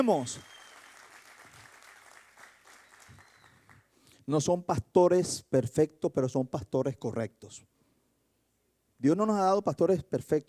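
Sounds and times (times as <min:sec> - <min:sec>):
speech: 0:00.0 - 0:00.5, 0:04.3 - 0:07.7, 0:09.0 - 0:10.4
audience applause: 0:00.0 - 0:03.9.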